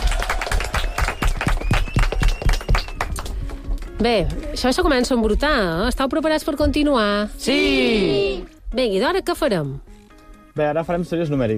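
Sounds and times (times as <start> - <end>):
applause: 0.0 - 4.0
speech: 4.0 - 9.9, 10.6 - 11.5.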